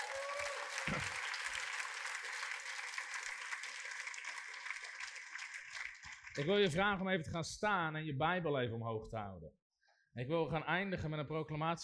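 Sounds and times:
audience applause: 0.0s - 6.8s
speech: 6.4s - 9.6s, 10.2s - 11.8s.

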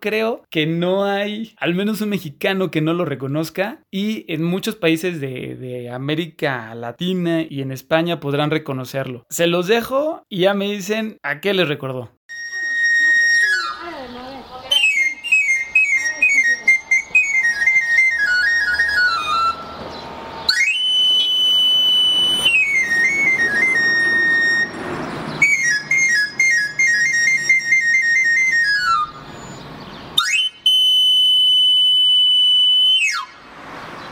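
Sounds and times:
speech: 0.0s - 12.2s
knife sharpener's pan flute whistle: 12.3s - 19.8s, 20.4s - 33.4s.

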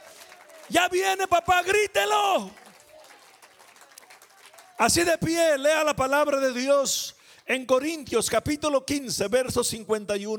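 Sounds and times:
audience applause: 0.0s - 5.0s
speech: 0.7s - 2.6s, 4.8s - 10.3s.

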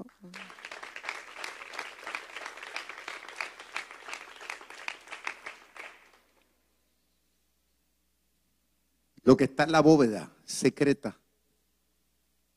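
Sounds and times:
audience applause: 0.3s - 6.4s
speech: 9.3s - 11.2s.

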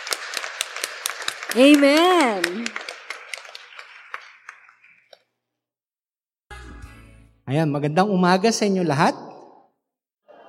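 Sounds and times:
audience applause: 0.0s - 5.1s
speech: 1.5s - 2.9s, 7.5s - 9.3s.

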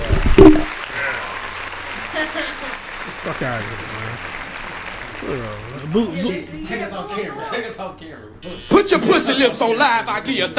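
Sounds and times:
speech: 0.4s - 0.8s, 3.3s - 4.4s, 5.2s - 10.5s
crowd applause: 0.7s - 6.4s.

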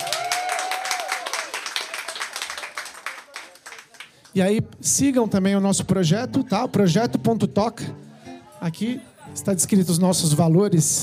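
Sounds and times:
applause: 0.0s - 4.4s
speech: 4.4s - 8.0s, 8.6s - 11.0s.

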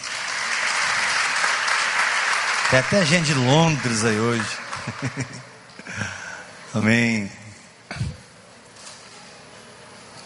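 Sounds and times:
audience applause: 0.0s - 6.1s
speech: 2.7s - 6.1s, 6.8s - 8.0s
laughter: 4.5s - 6.2s.

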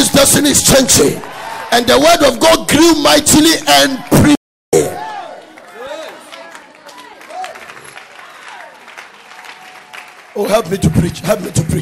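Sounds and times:
speech: 0.3s - 4.4s, 10.4s - 11.8s
audience clapping: 5.1s - 11.8s.

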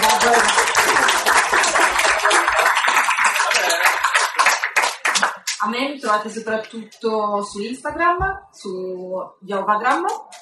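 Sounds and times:
live audience applause: 0.0s - 5.6s
speech: 5.7s - 10.2s.

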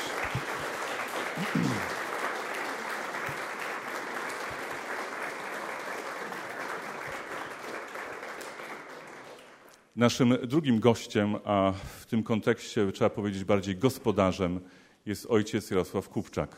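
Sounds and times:
applause: 0.0s - 9.9s
speech: 10.0s - 16.5s.

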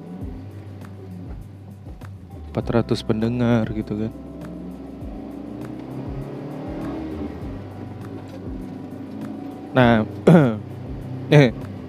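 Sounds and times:
car engine and road noise inside a moving car: 0.0s - 11.8s
speech: 2.6s - 4.3s, 9.8s - 10.1s.

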